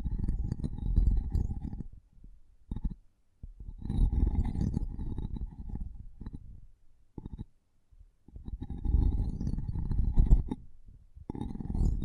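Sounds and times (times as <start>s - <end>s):
intense microphone tapping and scratching: 0.0s - 2.0s, 2.7s - 6.6s, 8.3s - 12.0s.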